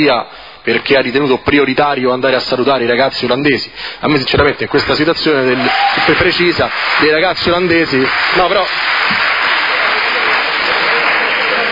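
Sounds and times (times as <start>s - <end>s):
speech: 0.0s - 9.4s
audience applause: 5.4s - 11.7s.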